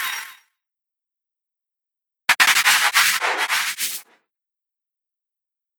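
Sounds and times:
space zoom whoosh: 2.3 - 4.2.

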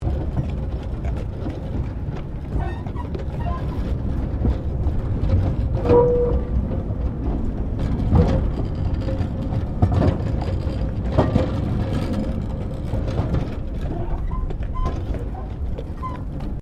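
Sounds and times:
horse-drawn tram carriage rolling: 0.0 - 16.6.

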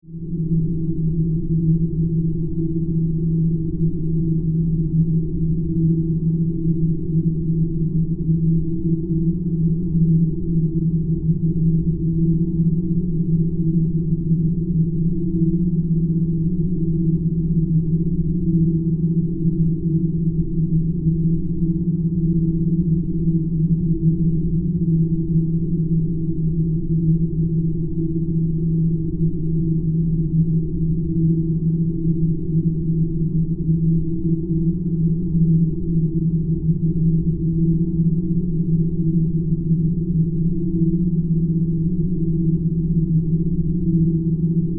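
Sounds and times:
steady hollow drone: 0.0 - 44.7.

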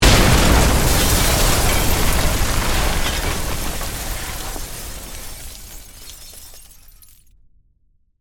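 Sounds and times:
building explosion: 0.0 - 6.4
crash: 0.0 - 7.3.

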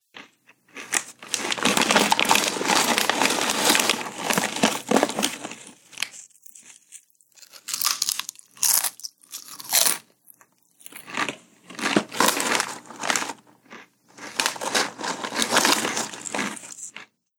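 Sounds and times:
munching potato chips: 0.1 - 17.1
hand reaching into a bag: 1.4 - 5.8.

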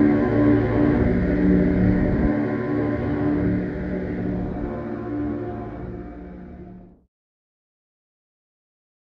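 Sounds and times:
orchestral drone: 0.0 - 7.0.

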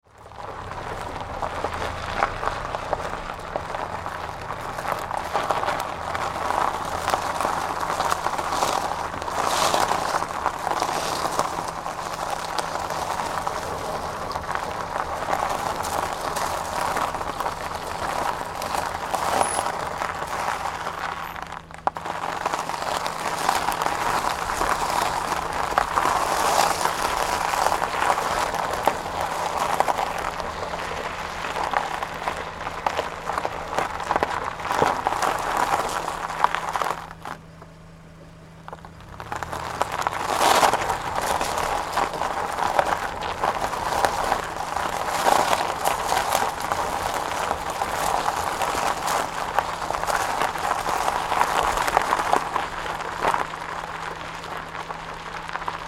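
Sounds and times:
car tyres on gravel driving slowly: 0.0 - 55.8.

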